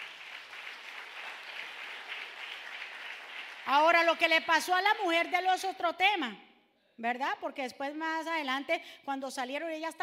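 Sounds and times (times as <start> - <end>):
audience applause: 0.0 - 3.7
speech: 3.7 - 10.0.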